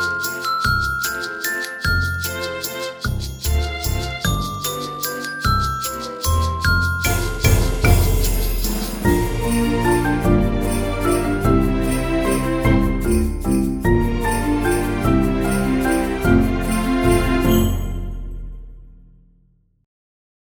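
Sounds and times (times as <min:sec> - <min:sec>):
chime bars: 0:00.0 - 0:12.2
musical accompaniment: 0:00.0 - 0:18.9.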